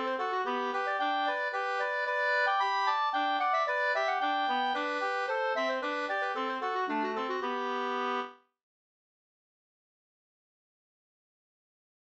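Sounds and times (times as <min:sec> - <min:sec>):
two-part polska dance tune: 0:00.0 - 0:08.3.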